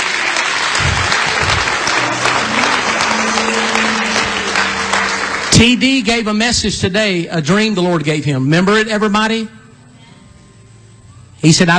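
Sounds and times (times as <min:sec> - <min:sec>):
audience applauding, hand clapping: 0:00.0 - 0:06.6
speech: 0:05.6 - 0:09.6, 0:11.4 - 0:11.7.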